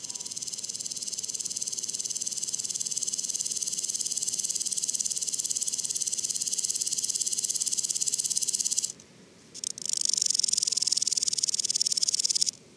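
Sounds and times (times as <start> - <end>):
woodland grasshopper stridulation: 0.0 - 9.0, 9.6 - 12.6.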